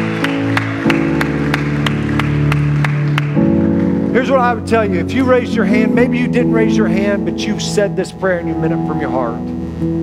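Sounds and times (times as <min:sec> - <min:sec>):
audience clapping in a steady rhythm: 0:00.0 - 0:05.4
sustained held musical chords: 0:00.0 - 0:10.0
speech: 0:04.2 - 0:10.0.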